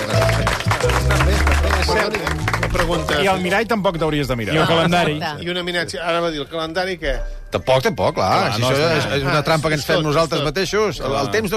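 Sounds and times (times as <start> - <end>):
applause: 0.0 - 3.6
speech: 2.1 - 11.5.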